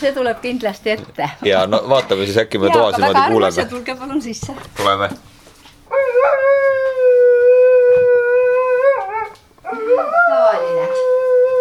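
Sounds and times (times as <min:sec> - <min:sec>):
speech: 0:00.0 - 0:05.3
dog howling, singing: 0:05.9 - 0:11.6.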